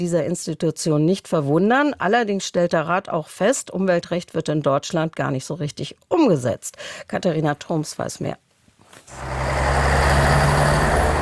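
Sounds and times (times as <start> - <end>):
speech: 0.0 - 9.8
road traffic at busy city intersection Stuttgart Neckartor: 9.1 - 11.2.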